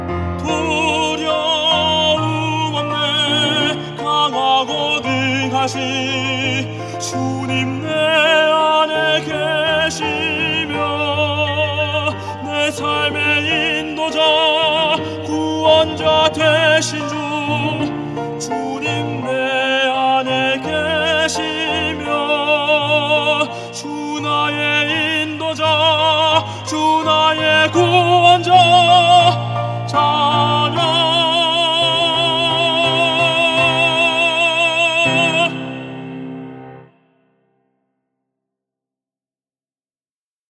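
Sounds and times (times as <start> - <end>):
tenor singing: 0.1 - 36.9.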